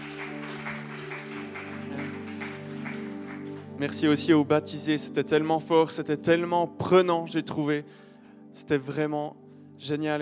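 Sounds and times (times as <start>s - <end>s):
audience applause: 0.0s - 3.8s
sustained musical tones: 0.0s - 4.2s
speech: 3.8s - 10.2s.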